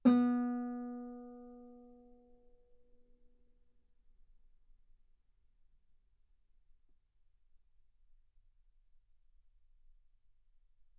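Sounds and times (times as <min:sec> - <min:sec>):
guitar note B3: 0:00.0 - 0:01.9.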